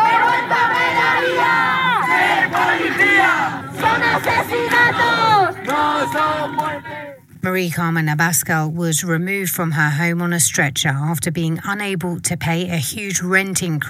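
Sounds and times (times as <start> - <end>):
protest crowd chanting a slogan outside Parliament in Madrid: 0.0 - 7.2
speech: 7.5 - 13.8.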